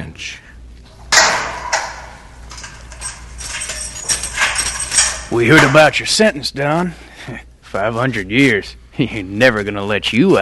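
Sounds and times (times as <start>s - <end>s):
speech: 0.2s - 0.4s, 5.3s - 10.4s
faint clanking and rattling: 0.8s - 10.4s
heavy prison cell door slamming shut: 0.9s - 5.9s.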